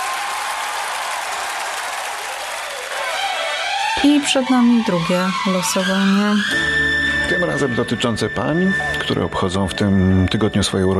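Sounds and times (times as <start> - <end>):
audience applause: 0.0 - 4.0
speech: 4.0 - 10.9.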